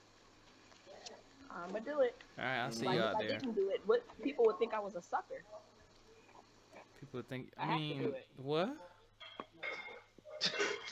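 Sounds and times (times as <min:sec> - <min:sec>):
speech: 0:00.9 - 0:05.7, 0:07.0 - 0:08.9
dishes being washed: 0:09.2 - 0:10.9.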